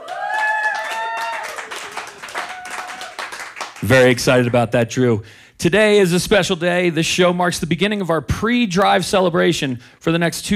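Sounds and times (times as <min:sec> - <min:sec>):
studio audience applause for a radio show host: 0:00.0 - 0:04.6
speech: 0:03.8 - 0:10.5.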